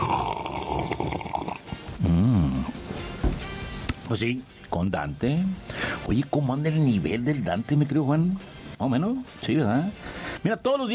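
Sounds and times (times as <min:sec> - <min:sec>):
person slurping coffee: 0:00.0 - 0:02.7
person humming with satisfaction: 0:02.0 - 0:02.8
speech: 0:04.1 - 0:10.9.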